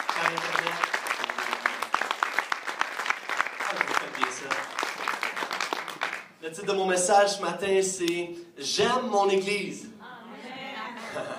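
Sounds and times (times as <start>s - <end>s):
audience applauding: 0.0s - 6.4s
speech: 0.2s - 1.0s, 6.5s - 9.9s
laughter: 10.5s - 11.3s.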